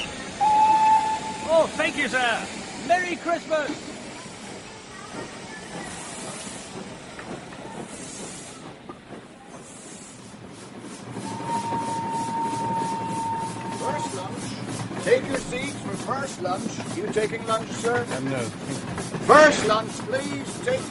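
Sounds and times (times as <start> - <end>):
train rolling along its rails: 0.0 - 20.8
speech: 1.6 - 3.9, 16.3 - 20.8.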